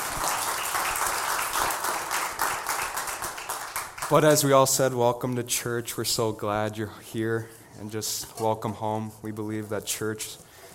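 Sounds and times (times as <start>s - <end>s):
church audience applause: 0.0s - 4.3s
speech: 4.1s - 10.5s.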